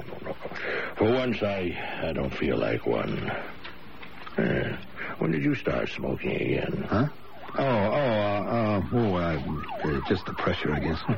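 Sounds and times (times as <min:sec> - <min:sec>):
speech: 0:01.0 - 0:03.6, 0:04.4 - 0:11.1
ambulance siren approaching: 0:06.2 - 0:11.1.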